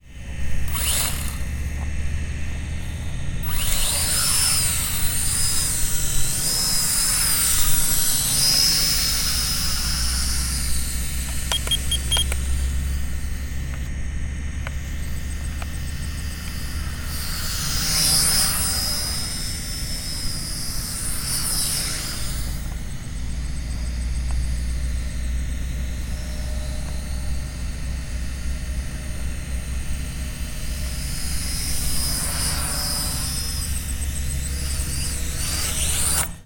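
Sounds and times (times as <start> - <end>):
aircraft taking off, flying by and landing: 0.0 - 36.4.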